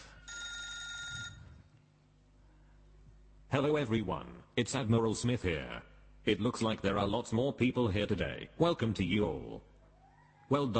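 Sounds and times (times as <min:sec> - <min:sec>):
telephone ringing: 0:00.2 - 0:01.6
speech: 0:03.5 - 0:09.7, 0:10.5 - 0:10.7.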